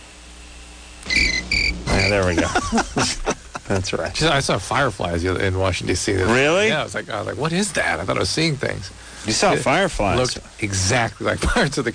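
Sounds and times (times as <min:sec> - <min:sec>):
crickets chirping at night in Virginia heard over a phone: 0:01.1 - 0:02.9
laughter: 0:02.1 - 0:04.3
speech: 0:02.1 - 0:11.9.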